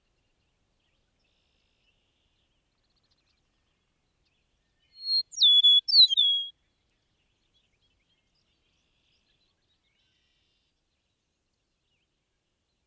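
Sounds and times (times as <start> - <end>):
Eastern meadowlark whistled song: 4.9 - 6.5.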